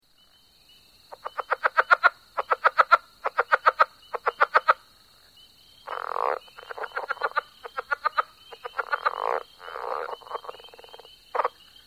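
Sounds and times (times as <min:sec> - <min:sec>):
southern leopard frog coarse pulsed croaks: 0:01.1 - 0:04.9, 0:05.8 - 0:11.6.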